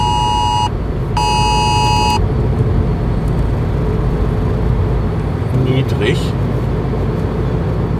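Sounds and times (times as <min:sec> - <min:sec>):
phone emergency warning alert tone: 0:00.0 - 0:02.2
road and engine rumble: 0:00.0 - 0:07.9.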